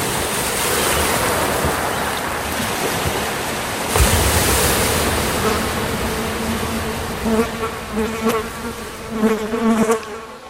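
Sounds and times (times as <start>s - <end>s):
sea water lapping beneath open windows on an island morning: 0.0s - 10.0s
fly buzzing: 5.4s - 10.4s.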